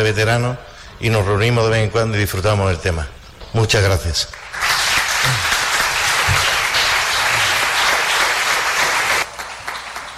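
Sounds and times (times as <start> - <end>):
speech: 0.0 - 4.4
audience applause: 4.4 - 10.1.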